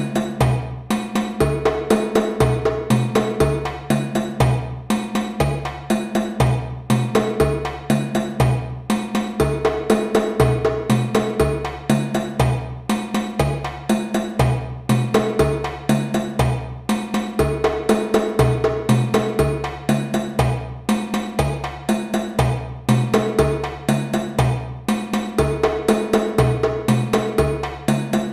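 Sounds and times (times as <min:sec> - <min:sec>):
djembe groove at 120 bpm: 0:00.0 - 0:28.3.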